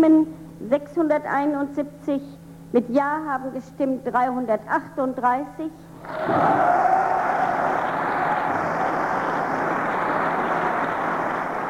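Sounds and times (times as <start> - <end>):
speech: 0.0 - 7.8
heavy applause in parliament: 6.0 - 11.6.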